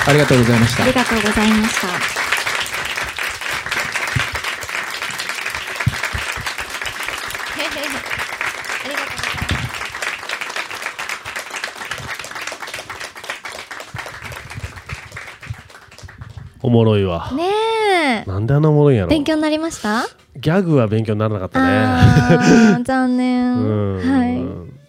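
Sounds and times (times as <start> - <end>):
speech: 0.0 - 2.2, 16.7 - 24.5
audience applause: 0.0 - 16.6
laughter: 21.6 - 22.8.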